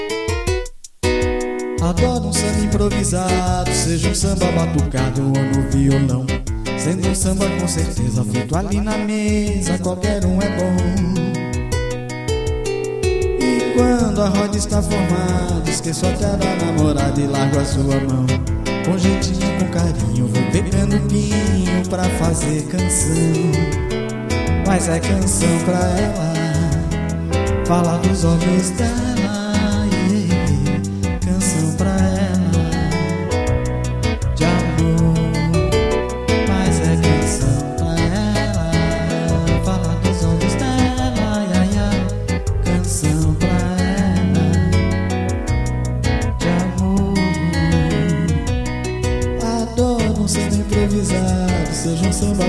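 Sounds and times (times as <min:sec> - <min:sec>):
improvised samba: 0:00.2 - 0:52.4.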